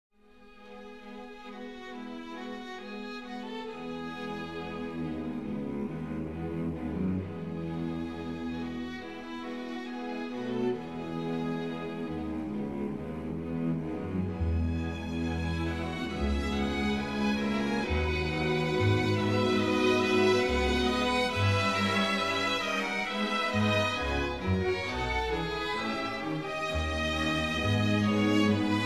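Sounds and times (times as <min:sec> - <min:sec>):
string serenade: 0:00.2 - 0:28.8.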